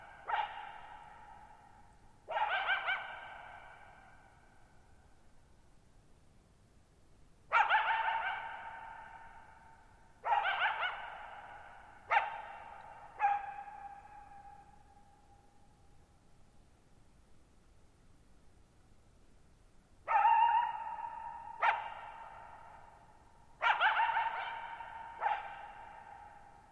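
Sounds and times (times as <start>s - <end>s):
coyote barking and yipping: 0.0s - 1.7s, 2.3s - 4.1s, 7.5s - 9.5s, 10.2s - 14.8s, 20.0s - 22.8s, 23.6s - 26.6s.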